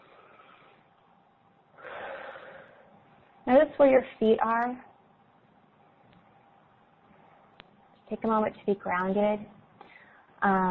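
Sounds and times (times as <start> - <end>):
group taking a deep breath during a grounding exercise: 1.8 - 2.9, 9.8 - 10.3
speech: 3.5 - 4.9, 8.1 - 9.6, 10.4 - 10.7.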